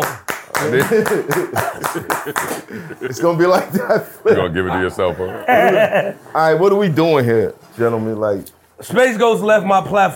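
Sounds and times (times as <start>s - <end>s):
round of applause: 0.0s - 2.7s
people talking and laughing: 0.6s - 6.7s
speech: 0.6s - 10.1s.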